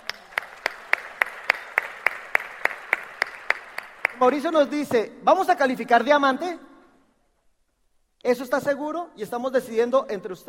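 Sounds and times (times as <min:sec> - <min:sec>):
applause in a steady even rhythm: 0:00.0 - 0:05.0
speech: 0:04.2 - 0:06.7, 0:08.2 - 0:10.4.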